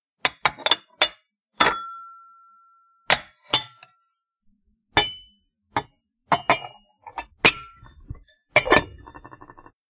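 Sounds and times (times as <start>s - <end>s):
tableware: 0.2s - 4.2s, 4.9s - 9.8s.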